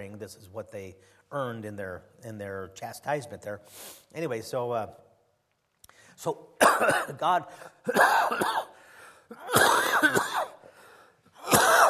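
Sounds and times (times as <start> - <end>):
speech: 0.0 - 5.0, 6.2 - 8.7
quiet breathing: 5.8 - 6.2, 8.8 - 9.3, 10.6 - 11.4
preacher with a cold coughing wetly during a sermon: 6.6 - 10.7, 11.4 - 11.8.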